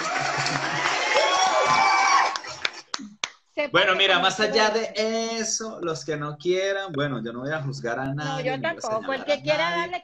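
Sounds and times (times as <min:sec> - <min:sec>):
applause and cheering: 0:00.0 - 0:03.1
speech: 0:03.7 - 0:10.0.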